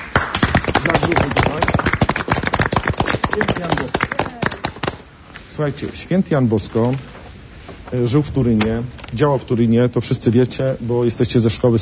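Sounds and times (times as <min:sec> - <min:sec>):
audience clapping: 0:00.0 - 0:05.1
speech: 0:00.8 - 0:01.4, 0:05.6 - 0:07.2, 0:07.9 - 0:11.8.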